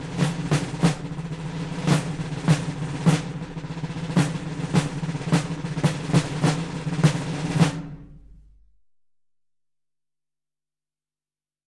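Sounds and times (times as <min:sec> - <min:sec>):
drums: 0:00.0 - 0:08.6.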